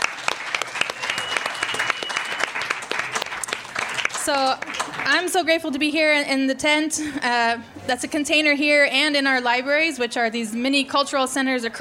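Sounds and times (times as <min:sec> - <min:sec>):
crowd round of applause: 0:00.0 - 0:05.2
speech: 0:04.2 - 0:11.7.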